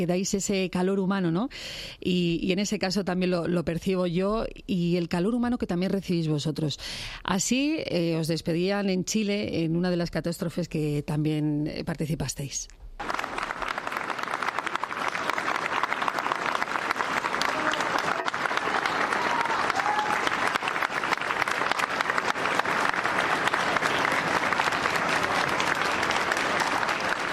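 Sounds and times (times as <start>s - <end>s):
speech: 0.0s - 13.2s
applause from a large crowd: 13.0s - 27.3s.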